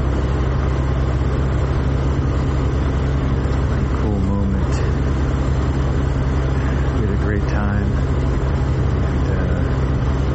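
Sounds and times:
car engine rumble while driving at night in the Puglia region of Italy: 0:00.0 - 0:10.3
road noise from a car driving at night in Puglia: 0:00.0 - 0:10.3.

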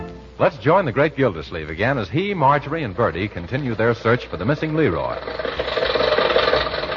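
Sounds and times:
speech: 0:00.4 - 0:05.8
old car engine running: 0:03.2 - 0:06.9.

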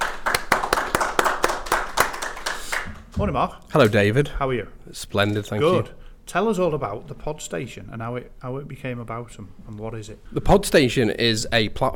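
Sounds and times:
round of applause, hands clapping: 0:00.0 - 0:03.2
speech: 0:03.2 - 0:11.9.

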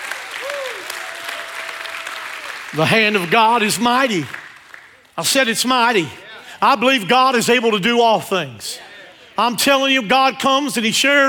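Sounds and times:
crowd clapping: 0:00.0 - 0:05.4
speech: 0:02.7 - 0:04.4, 0:05.2 - 0:11.2.

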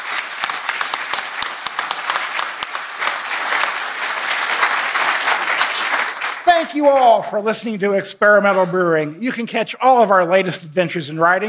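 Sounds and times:
big warm round of applause from a crowd: 0:00.0 - 0:07.3
speech: 0:06.6 - 0:11.4.

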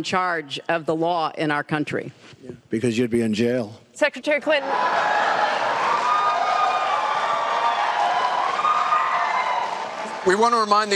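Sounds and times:
speech: 0:00.0 - 0:05.4, 0:10.2 - 0:10.9
audience applause and cheering: 0:04.6 - 0:10.9.

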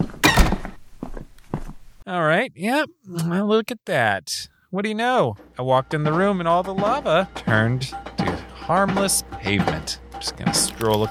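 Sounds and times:
door shutting: 0:00.0 - 0:01.2
speech: 0:02.1 - 0:08.1, 0:08.7 - 0:11.0.

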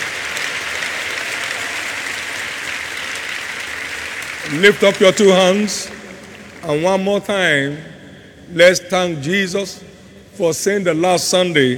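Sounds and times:
audience clapping: 0:00.0 - 0:07.1
speech: 0:04.5 - 0:06.0, 0:06.6 - 0:07.9, 0:08.5 - 0:11.7.

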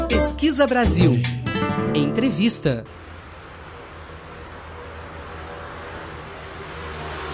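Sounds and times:
speech: 0:00.2 - 0:03.1
pied tamarin high-pitched calls: 0:03.9 - 0:07.0.

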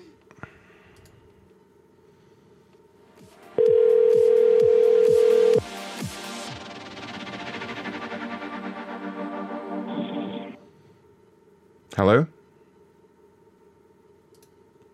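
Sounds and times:
telephone tone on a prank call: 0:03.6 - 0:05.6
speech: 0:12.0 - 0:12.3.

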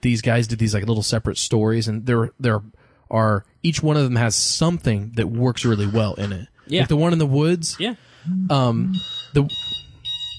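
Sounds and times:
speech: 0:00.0 - 0:09.7
alarm beeping: 0:08.3 - 0:10.3.

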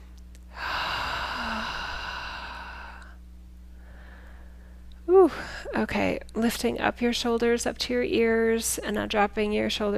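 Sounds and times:
faint low hum: 0:00.0 - 0:09.9
deep breath: 0:00.5 - 0:04.8
speech: 0:05.3 - 0:09.9.

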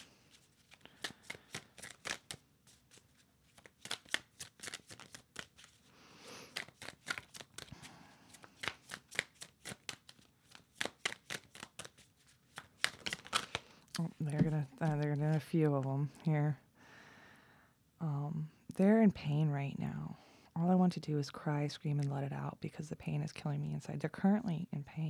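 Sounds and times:
tarot cards being shuffled: 0:00.0 - 0:15.5
speech: 0:14.8 - 0:16.6, 0:18.8 - 0:25.0.

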